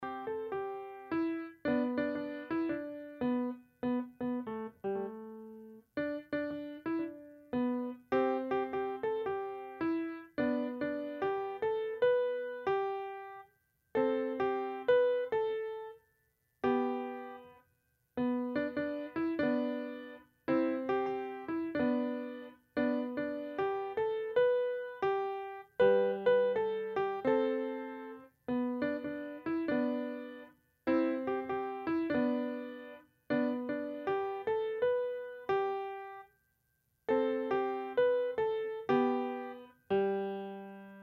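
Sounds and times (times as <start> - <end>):
instrumental music: 0.0 - 36.4, 37.0 - 41.0.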